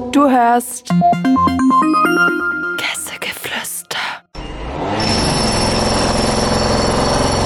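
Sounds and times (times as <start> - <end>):
speech: 0.2 - 3.7
power drill boring: 5.0 - 7.4.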